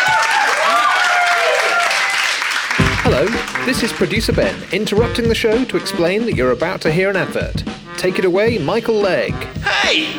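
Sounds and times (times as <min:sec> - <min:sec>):
audience applause: 0:00.0 - 0:05.0
speech: 0:03.2 - 0:10.1.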